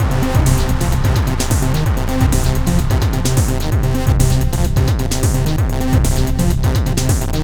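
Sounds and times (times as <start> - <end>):
hardcore breakbeat in C minor at 129 BPM: 0.0 - 7.4.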